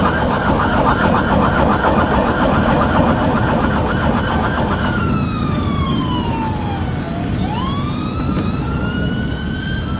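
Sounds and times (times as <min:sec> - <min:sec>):
siren: 0:00.0 - 0:09.9.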